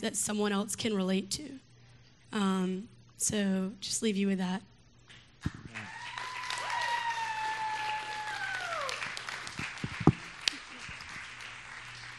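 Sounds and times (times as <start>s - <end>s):
speech: 0.0s - 1.7s, 2.3s - 4.7s, 5.4s - 5.9s
audience applause: 5.5s - 12.1s.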